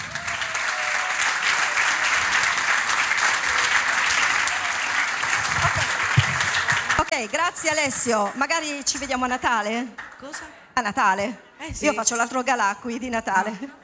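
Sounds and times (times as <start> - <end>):
audience applause: 0.0 - 7.5
speech: 7.2 - 13.8.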